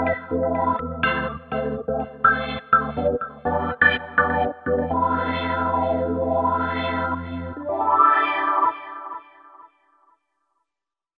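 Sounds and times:
smooth dance organ: 0.0 - 7.7.

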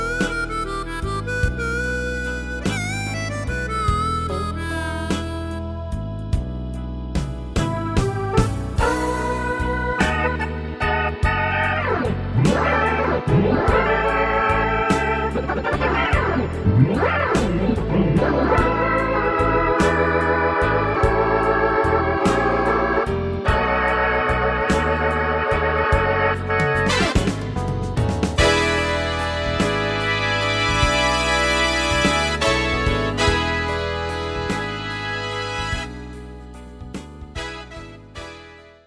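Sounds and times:
slow blues R&B style keyboard accompaniment: 0.0 - 38.8.

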